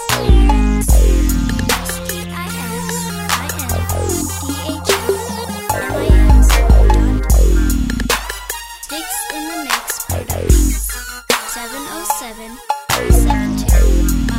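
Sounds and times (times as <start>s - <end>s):
mob style 808 bass beat: 0.3s - 8.2s, 13.1s - 14.3s.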